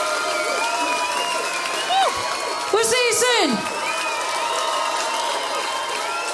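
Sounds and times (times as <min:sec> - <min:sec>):
concert audience applause at the BBC Radio 6 Music Festival in Manchester: 0:00.0 - 0:06.3
crowd shouts: 0:00.0 - 0:06.3
whistles: 0:00.3 - 0:02.6, 0:03.7 - 0:06.3
speech: 0:02.8 - 0:03.8.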